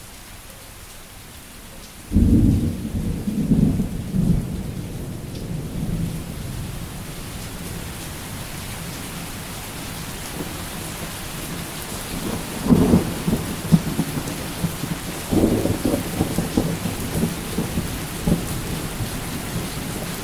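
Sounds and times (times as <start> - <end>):
thunder: 2.1 - 6.8, 12.3 - 20.1.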